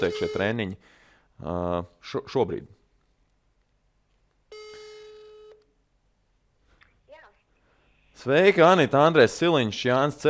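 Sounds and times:
telephone ringing tone: 0.0s - 0.5s, 4.5s - 5.6s
speech: 0.0s - 2.8s, 8.2s - 10.2s.

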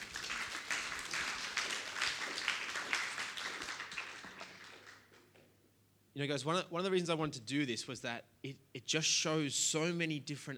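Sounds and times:
audience clapping: 0.0s - 5.4s
speech: 6.2s - 10.5s.

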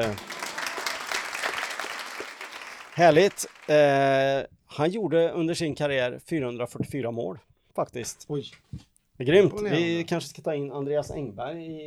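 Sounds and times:
speech: 0.0s - 0.3s, 3.0s - 11.8s
small group clapping: 0.0s - 4.1s.

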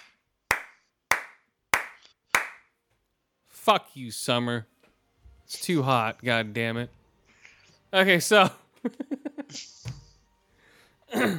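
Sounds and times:
hand claps: 0.0s - 2.7s
speech: 3.7s - 4.7s, 5.5s - 7.0s, 7.9s - 9.9s, 11.1s - 11.3s.

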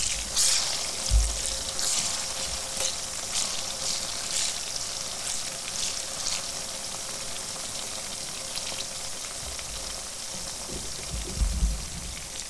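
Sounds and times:
aubergines shallow-frying in oil in a pan: 0.0s - 12.4s
soft low thump: 1.1s - 1.6s, 10.7s - 12.2s.

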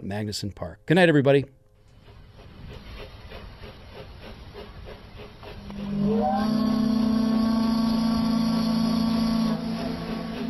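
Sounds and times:
speech: 0.1s - 1.6s
steamer docking whistle blast sound effect: 5.7s - 10.4s.

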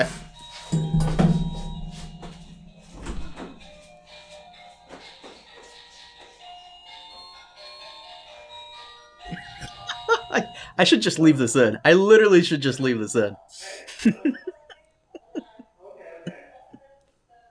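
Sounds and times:
melodic doorbell chime: 0.0s - 4.9s, 6.2s - 11.3s
low thumps: 0.8s - 3.7s
laughter: 9.3s - 10.6s, 13.5s - 16.8s
speech: 10.4s - 14.5s.

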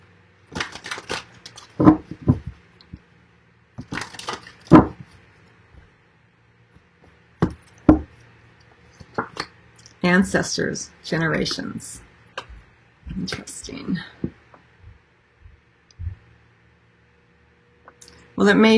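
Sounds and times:
Earth Magic oracle deck cards snapping and rustling: 0.5s - 2.5s, 3.8s - 5.1s
speech: 1.8s - 2.0s, 10.2s - 12.1s, 13.2s - 14.2s, 18.4s - 18.7s.

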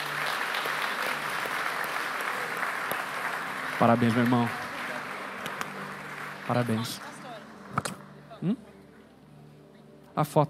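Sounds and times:
crowd clapping: 0.0s - 8.2s
speech: 3.8s - 4.6s, 6.5s - 7.1s, 7.8s - 8.7s, 10.2s - 10.4s.

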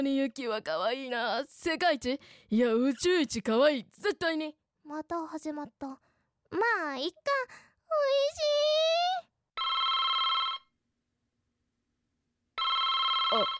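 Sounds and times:
speech: 0.0s - 9.8s, 13.3s - 13.5s
telephone ringing with an incoming call from an older sister: 9.6s - 10.7s, 12.6s - 13.5s.

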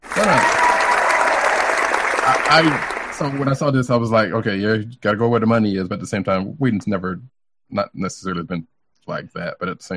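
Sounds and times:
crowd applauding: 0.0s - 3.8s
speech: 0.2s - 0.6s, 2.3s - 9.9s.

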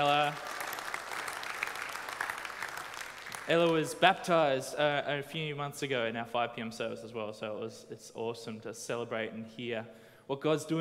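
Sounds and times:
speech: 0.0s - 0.6s, 3.5s - 10.7s
audience round of applause: 0.0s - 3.9s.

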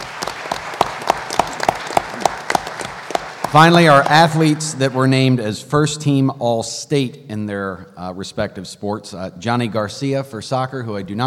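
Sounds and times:
audience applause: 0.0s - 5.4s
speech: 3.5s - 11.2s.

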